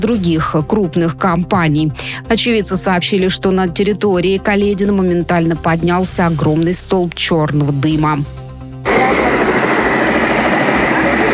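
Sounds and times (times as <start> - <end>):
speech: 0.0 - 8.4
helicopter engine and rotor roar lifting off near a burning tire-recycling warehouse: 8.8 - 11.3.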